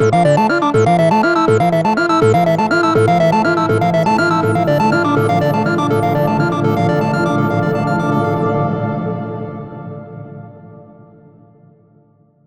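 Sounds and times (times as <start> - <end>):
synth loop in E minor: 0.0 - 8.4.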